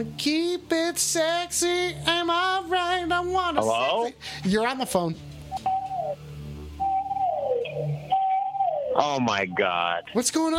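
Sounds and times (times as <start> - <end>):
speech: 0.0 - 5.4, 9.0 - 10.5
family of blue whales calling: 6.8 - 9.0.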